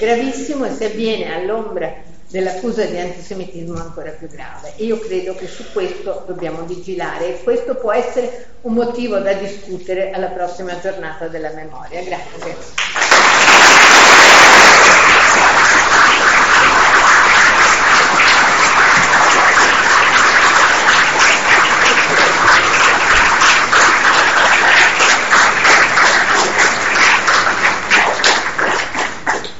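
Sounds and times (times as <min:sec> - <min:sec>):
speech: 0:00.0 - 0:13.0
audience applause after a speech: 0:12.8 - 0:29.5.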